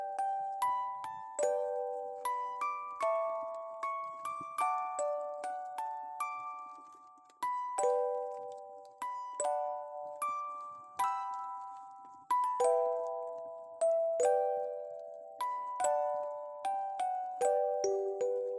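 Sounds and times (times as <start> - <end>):
music box melodies: 0.0 - 18.5.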